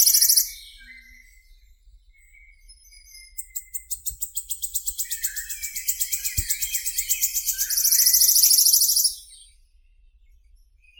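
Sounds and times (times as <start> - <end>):
Phylloscopus sibilatrix wood warbler singing: 0.0 - 0.7, 3.4 - 9.3.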